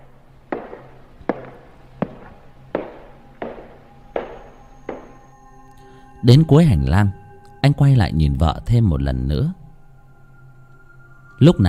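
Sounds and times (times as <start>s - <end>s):
footsteps following behind: 0.5s - 5.2s
speech: 6.2s - 9.6s, 11.4s - 11.6s.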